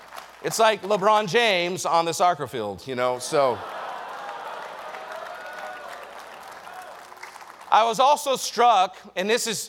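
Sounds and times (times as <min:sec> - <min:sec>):
audience clapping: 0:00.0 - 0:01.4, 0:03.2 - 0:08.2
speech: 0:00.4 - 0:03.8, 0:07.8 - 0:09.6.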